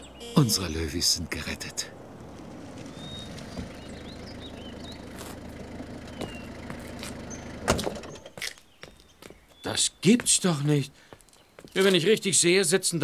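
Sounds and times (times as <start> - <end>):
small birds chirping: 0.0 - 2.1, 2.8 - 12.4
car engine rumbling: 0.0 - 8.4
speech: 0.4 - 2.0, 9.7 - 11.1, 11.7 - 13.0.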